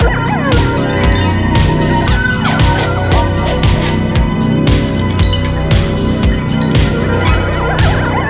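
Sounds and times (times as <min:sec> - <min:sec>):
spooky breakdown music: 0:00.0 - 0:08.2.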